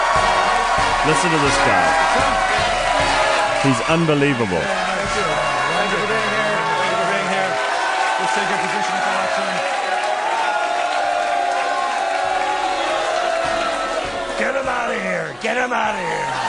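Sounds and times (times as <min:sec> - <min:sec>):
debate audience booing a candidate: 0:00.0 - 0:16.4
speech: 0:01.0 - 0:05.4, 0:08.4 - 0:09.9, 0:14.4 - 0:16.4.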